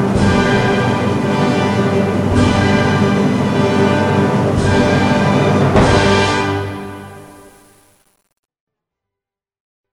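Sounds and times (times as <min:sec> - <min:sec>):
bass drum: 0:00.2 - 0:08.0.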